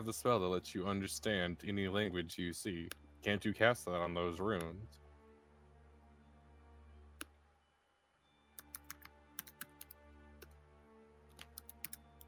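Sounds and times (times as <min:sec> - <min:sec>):
speech: 0:00.0 - 0:05.0
typing on a computer keyboard: 0:08.6 - 0:10.0, 0:11.4 - 0:12.2.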